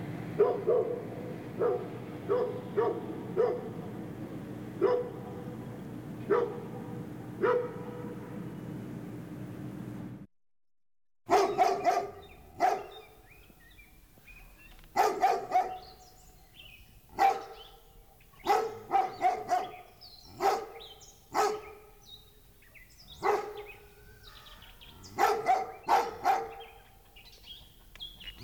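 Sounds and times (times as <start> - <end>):
large dog barking: 0.4 - 4.0, 4.8 - 8.4, 11.3 - 13.2, 14.9 - 16.1, 17.1 - 27.0.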